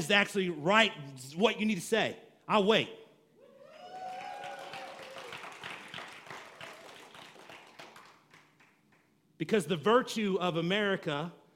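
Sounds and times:
speech: 0.0s - 3.0s, 9.4s - 11.4s
audience applause: 3.8s - 8.8s.

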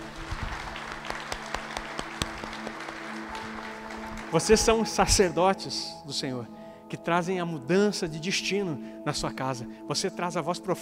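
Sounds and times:
audience applause: 0.0s - 5.0s
speech: 4.3s - 10.8s.

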